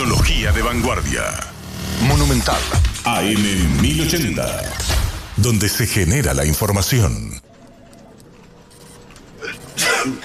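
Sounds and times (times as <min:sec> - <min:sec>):
speech: 0:00.1 - 0:07.5, 0:10.0 - 0:10.2
flu sufferer sneezing in a comic sketch: 0:09.4 - 0:10.2.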